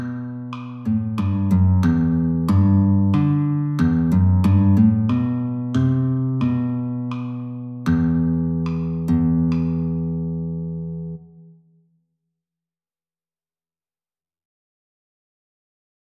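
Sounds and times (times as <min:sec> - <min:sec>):
galliard on guitar: 0:00.0 - 0:11.2.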